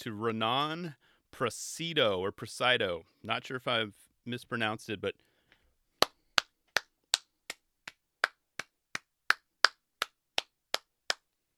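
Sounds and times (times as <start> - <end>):
speech: 0.0 - 5.3
one person clapping slowly: 6.0 - 11.3.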